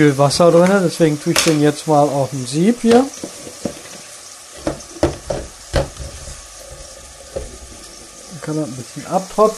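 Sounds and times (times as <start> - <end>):
speech: 0.0 - 3.5, 8.5 - 9.5
onions sweating in a pan: 0.0 - 9.5.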